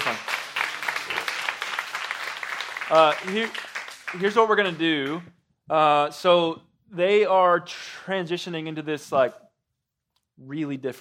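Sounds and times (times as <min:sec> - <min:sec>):
audience applause: 0:00.0 - 0:05.2
speech: 0:02.9 - 0:09.4, 0:10.4 - 0:11.0.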